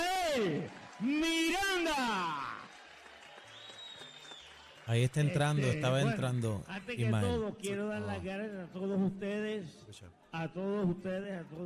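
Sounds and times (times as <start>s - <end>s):
audience applause: 0.0s - 6.4s
speech: 0.4s - 2.4s, 4.9s - 11.6s.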